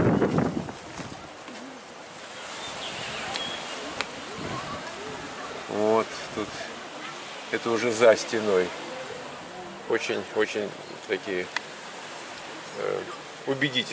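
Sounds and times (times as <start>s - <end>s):
wind blowing outdoors: 0.0s - 13.9s
speech: 7.6s - 8.8s, 9.9s - 11.6s, 12.8s - 13.9s.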